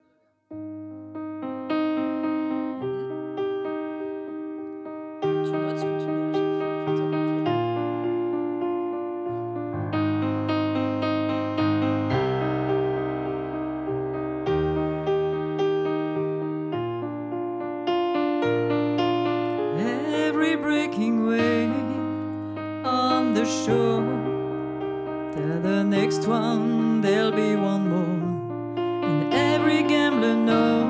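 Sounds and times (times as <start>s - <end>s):
piano: 0.0s - 30.8s
singing voice: 5.4s - 7.6s, 19.7s - 24.5s, 25.3s - 30.8s.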